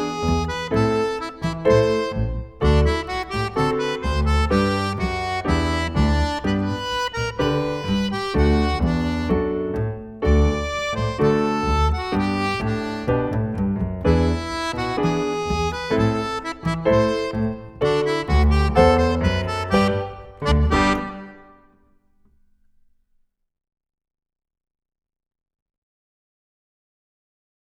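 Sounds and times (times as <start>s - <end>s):
milonga backing: 0.0s - 21.7s.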